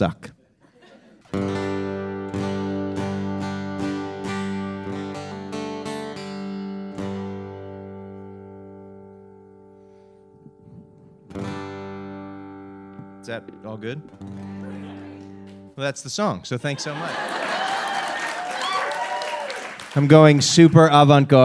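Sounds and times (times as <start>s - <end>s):
speech: 0.0s - 0.3s, 13.3s - 14.6s, 15.8s - 17.4s, 19.9s - 21.4s
laughter: 0.6s - 1.3s, 14.4s - 15.3s, 16.6s - 18.7s
guitar G chord strummed: 1.4s - 15.8s.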